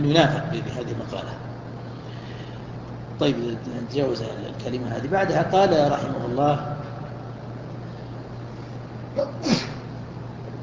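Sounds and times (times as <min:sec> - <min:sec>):
speech: 0:00.0 - 0:01.5, 0:03.2 - 0:06.8
quiet steady hum: 0:00.0 - 0:10.6
person sneezing: 0:09.2 - 0:09.9.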